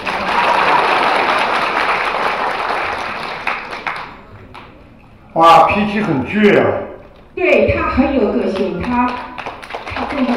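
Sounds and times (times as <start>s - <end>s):
audience applause: 0.0s - 4.7s, 8.8s - 10.3s
speech: 5.4s - 9.3s, 10.2s - 10.3s.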